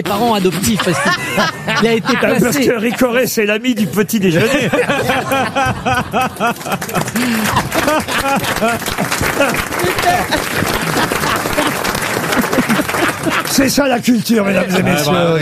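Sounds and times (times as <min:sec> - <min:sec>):
speech: 0:00.0 - 0:11.3, 0:13.5 - 0:15.4
audience laughter: 0:00.5 - 0:03.1, 0:04.3 - 0:13.7
audience applause: 0:04.8 - 0:14.2.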